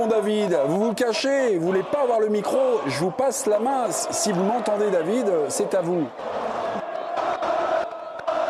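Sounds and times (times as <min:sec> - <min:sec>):
speech: 0:00.0 - 0:06.6
stadium crowd cheering after final whistle: 0:00.0 - 0:08.4.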